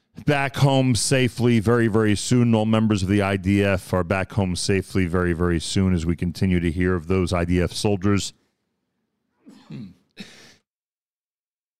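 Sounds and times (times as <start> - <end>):
speech: 0.3 - 8.4, 9.7 - 10.3
person sneezing: 9.4 - 10.7.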